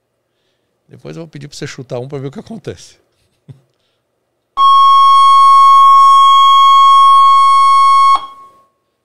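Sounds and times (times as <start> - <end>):
speech: 0.9 - 3.6
high-pitched electronic tone from a frequency generator: 4.6 - 8.6.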